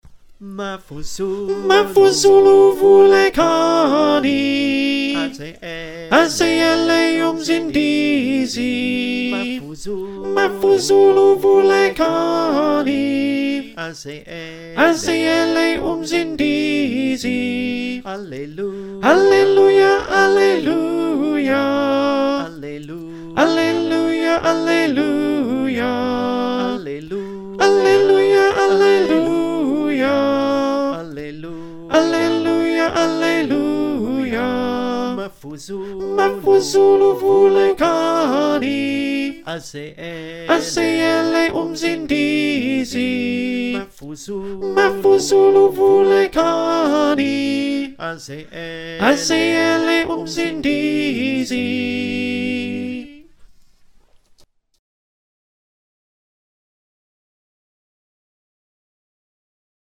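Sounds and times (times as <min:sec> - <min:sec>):
alto choir singing: 0:01.0 - 0:53.3.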